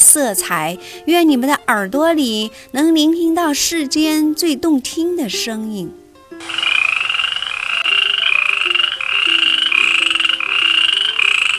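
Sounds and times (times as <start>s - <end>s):
speech: 0.1s - 6.7s
frog chorus croaking: 6.4s - 11.5s.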